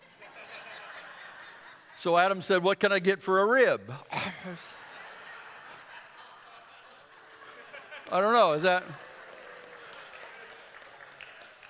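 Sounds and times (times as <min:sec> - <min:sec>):
laughter: 0:00.0 - 0:02.7, 0:03.9 - 0:10.9
speech: 0:02.0 - 0:04.8, 0:08.1 - 0:09.0
scattered audience clapping: 0:07.4 - 0:11.6.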